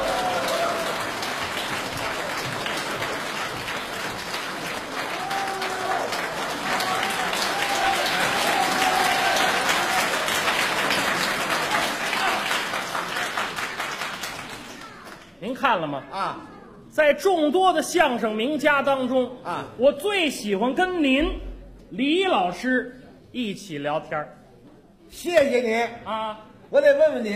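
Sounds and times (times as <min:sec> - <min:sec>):
audience applause welcoming performers: 0:00.0 - 0:15.3
speech: 0:15.7 - 0:24.4, 0:25.1 - 0:27.3.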